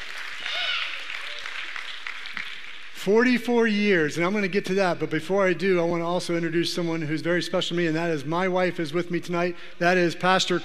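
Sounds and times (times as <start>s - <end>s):
audience clapping: 0.0s - 3.1s
speech: 3.0s - 10.6s.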